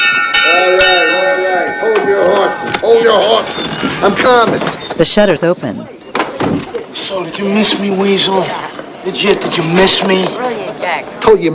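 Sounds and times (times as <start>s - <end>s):
bell rung by hand: 0.0s - 4.9s
speech: 2.9s - 6.0s, 7.0s - 11.5s.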